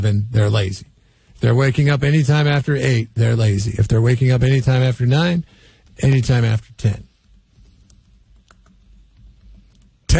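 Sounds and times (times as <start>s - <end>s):
speech: 0.0s - 7.1s
low hum: 0.0s - 10.1s
faint keystrokes on a computer keyboard: 5.6s - 10.1s.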